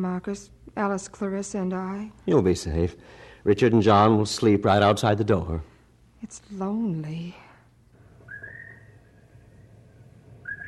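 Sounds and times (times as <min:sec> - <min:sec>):
speech: 0:00.0 - 0:07.4
birds calling: 0:08.0 - 0:10.6.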